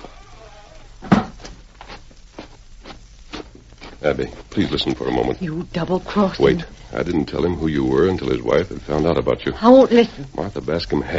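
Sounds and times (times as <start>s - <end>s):
door thudding shut: 1.0s - 1.4s
speech: 4.0s - 11.1s.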